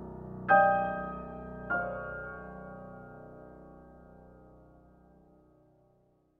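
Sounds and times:
piano jingle: 0:00.3 - 0:04.4.

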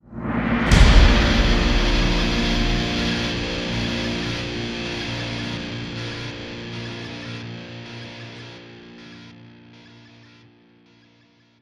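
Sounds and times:
guitar hit: 0:00.2 - 0:10.4.

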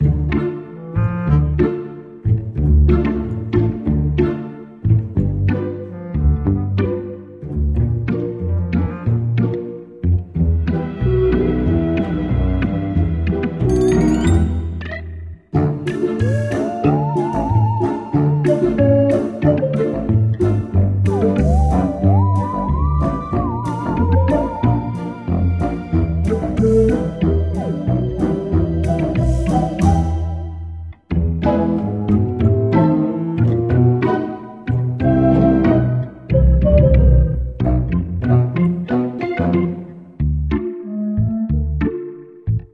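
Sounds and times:
game music: 0:00.0 - 0:42.5.

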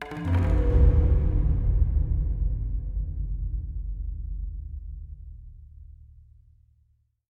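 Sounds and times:
percussion hit: 0:00.0 - 0:05.0.

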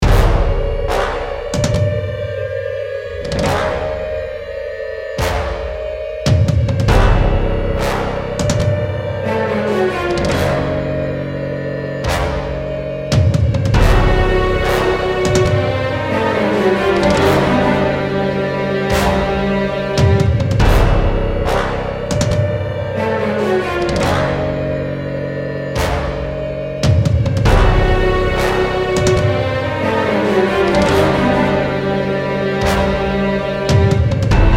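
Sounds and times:
ambient music: 0:00.0 - 0:34.5.

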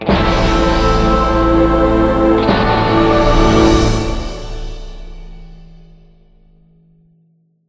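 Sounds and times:
western enemy disappear music stinger: 0:00.0 - 0:05.6.

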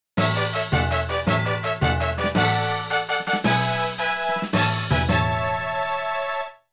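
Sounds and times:
level clear fanfare: 0:00.2 - 0:06.7.

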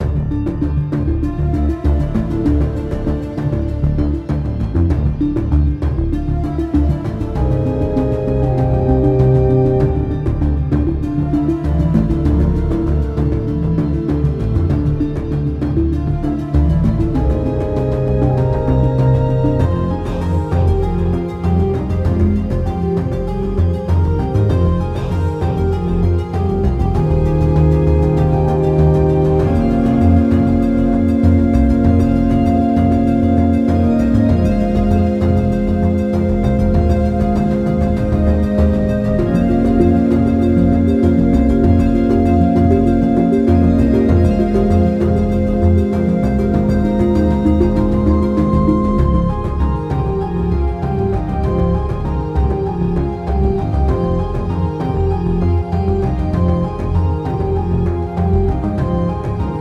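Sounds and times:
stage music: 0:00.0 - 0:59.5.

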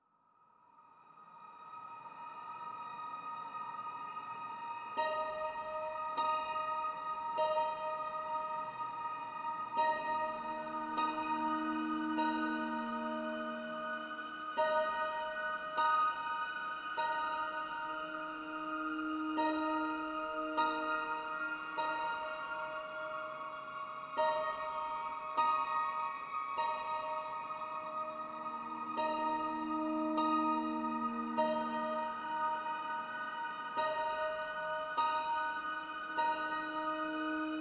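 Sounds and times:
ambient zither: 0:01.4 - 0:37.5.

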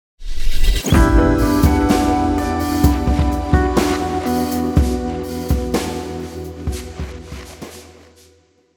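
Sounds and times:
mission clear music sting: 0:00.8 - 0:07.3.

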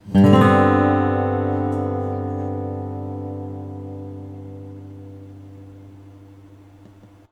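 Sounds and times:
musical chord: 0:00.2 - 0:06.7.

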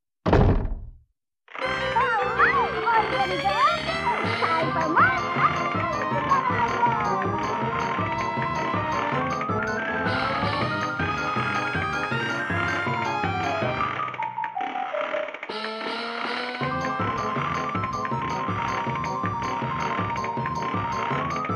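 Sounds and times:
cartoon music: 0:01.7 - 0:21.5.

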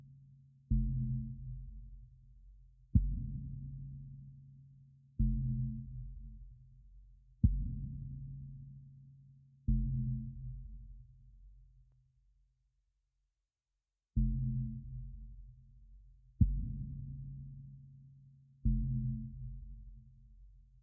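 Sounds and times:
tension kick drum: 0:00.7 - 0:04.0, 0:05.2 - 0:08.5, 0:09.7 - 0:11.5, 0:14.2 - 0:17.4, 0:18.7 - 0:20.6.

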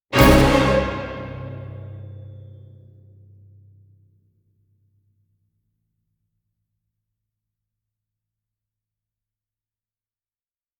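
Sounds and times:
orchestral hit: 0:00.1 - 0:02.7.

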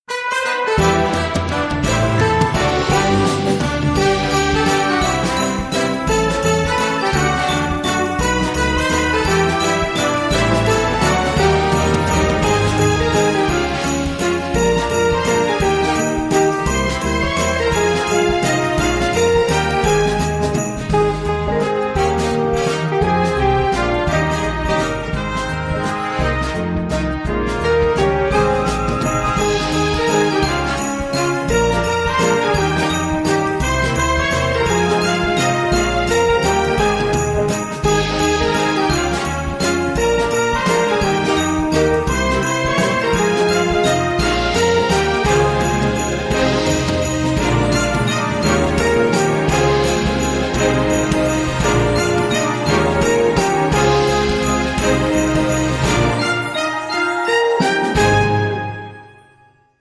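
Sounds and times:
jazz Christmas carol: 0:00.2 - 0:59.7.

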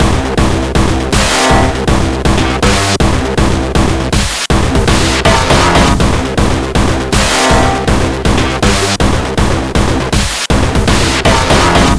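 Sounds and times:
beat loop: 0:00.0 - 0:11.9.

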